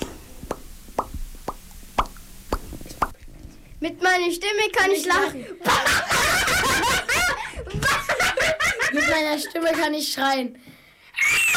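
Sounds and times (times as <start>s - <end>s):
mouth pops: 0.0s - 3.3s
speech: 3.8s - 5.9s, 9.0s - 10.7s
laughter: 5.4s - 9.6s.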